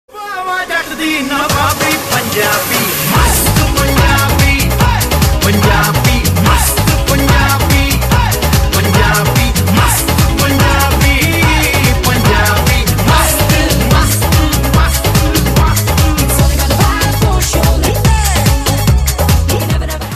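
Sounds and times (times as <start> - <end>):
Punjabi song: 0.1 - 20.1.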